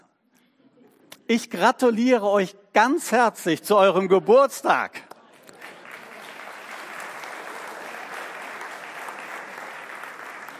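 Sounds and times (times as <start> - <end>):
speech: 1.3 - 5.1
audience applause: 5.5 - 10.5.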